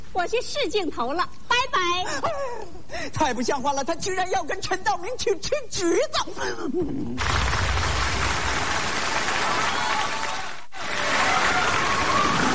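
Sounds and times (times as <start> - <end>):
speech: 0.2 - 7.6
audience applause: 7.2 - 12.5.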